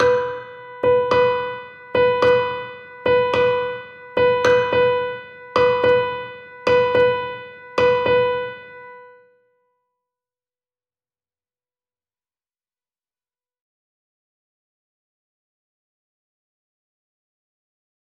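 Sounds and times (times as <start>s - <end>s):
rhythm exercise: 0.0s - 8.8s.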